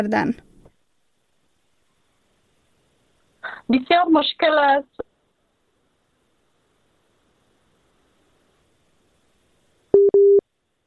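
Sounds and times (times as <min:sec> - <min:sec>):
speech: 0:00.0 - 0:00.4, 0:03.7 - 0:05.0
telephone busy tone beeps after a dropped call: 0:09.9 - 0:10.4.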